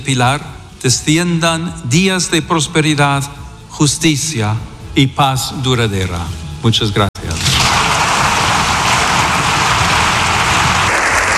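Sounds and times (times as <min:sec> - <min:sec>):
speech: 0:00.0 - 0:07.1
audience applause: 0:07.6 - 0:11.3.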